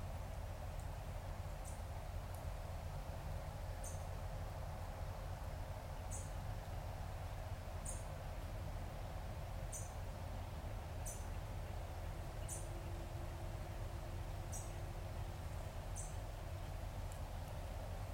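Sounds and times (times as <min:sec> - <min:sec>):
wind through trees at Conecuh River Nature Trail, Florida: 0:00.0 - 0:18.1.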